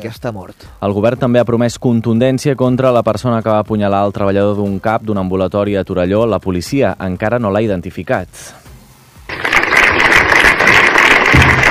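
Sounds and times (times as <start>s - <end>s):
speech: 0.0s - 8.6s
applause from dozens of neighbours: 9.3s - 11.6s.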